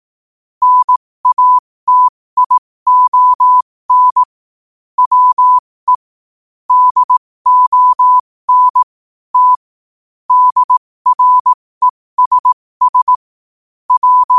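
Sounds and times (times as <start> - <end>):
morse code at 5 wpm: 0.6 - 4.3, 5.0 - 6.0, 6.7 - 9.6, 10.3 - 11.6, 12.2 - 13.2, 13.9 - 14.3.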